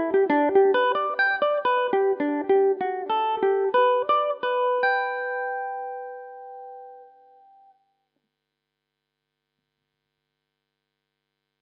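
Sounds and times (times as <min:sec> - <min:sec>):
Irish mandolin in G major: 0:00.0 - 0:07.1.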